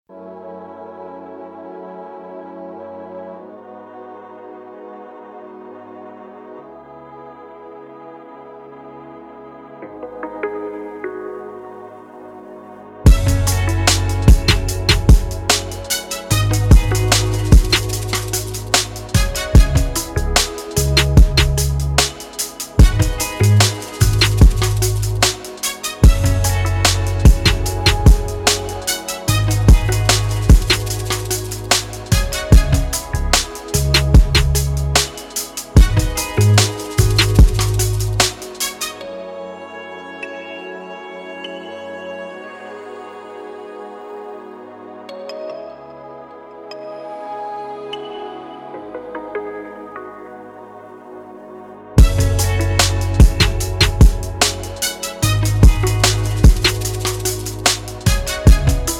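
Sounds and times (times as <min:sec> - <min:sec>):
instrumental type beat: 0:13.1 - 0:39.0, 0:52.0 - 0:58.9.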